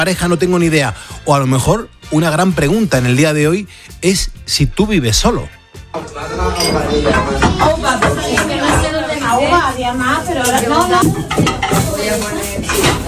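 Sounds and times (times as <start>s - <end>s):
speech: 0.0s - 8.5s, 9.3s - 13.0s
dishes, cutlery and pots clinking: 5.9s - 13.0s
many voices talking over one another in a family kitchen: 6.0s - 13.0s.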